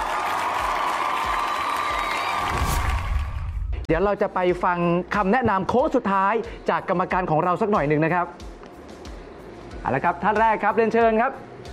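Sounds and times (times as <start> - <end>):
audience applause: 0.0 - 3.7
speech: 3.9 - 8.5, 9.8 - 11.5.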